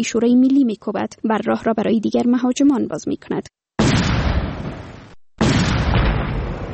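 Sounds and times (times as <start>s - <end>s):
speech: 0.0s - 4.0s
bomb explosion: 3.8s - 6.7s.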